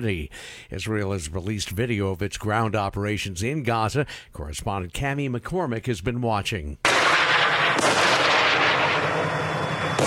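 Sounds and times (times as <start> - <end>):
speech: 0.0 - 7.9
booming blasts: 6.8 - 10.0
rocket fire in the Gaza Strip: 6.8 - 10.0.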